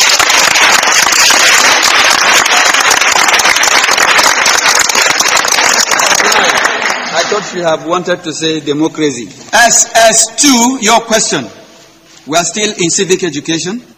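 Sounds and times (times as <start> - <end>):
group clapping: 0.0 - 7.6
speech: 7.5 - 11.6, 12.2 - 13.9.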